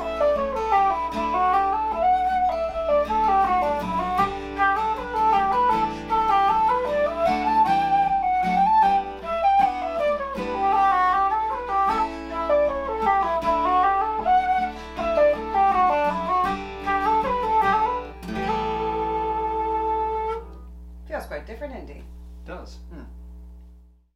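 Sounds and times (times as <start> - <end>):
flute: 0.0 - 20.6
guitar in D: 0.0 - 23.9.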